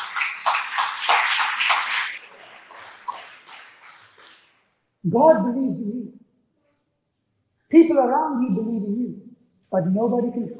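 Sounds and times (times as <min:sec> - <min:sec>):
audience applause: 0:00.0 - 0:04.6
speech: 0:05.0 - 0:06.2, 0:07.7 - 0:10.5.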